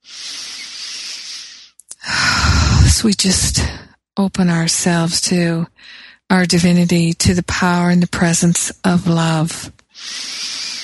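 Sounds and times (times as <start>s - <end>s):
deep breath during a guided meditation: 0.0s - 2.5s, 10.0s - 10.8s
speech: 3.0s - 10.4s.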